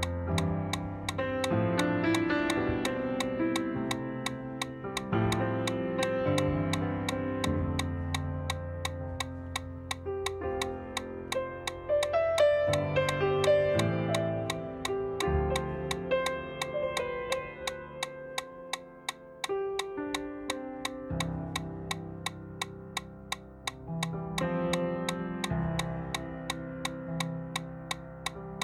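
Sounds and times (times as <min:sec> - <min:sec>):
metronome ticking at 170 beats per minute for running: 0:00.0 - 0:28.6.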